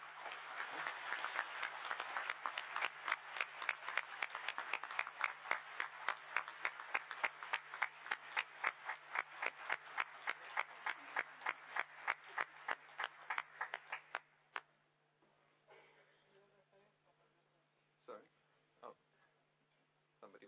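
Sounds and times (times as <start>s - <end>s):
crowd applause: 0.0s - 14.2s.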